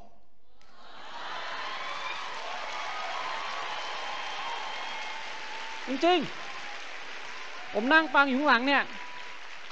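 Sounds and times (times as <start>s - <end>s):
audience clapping softly: 0.6s - 9.7s
speech: 5.9s - 6.5s, 7.7s - 9.0s.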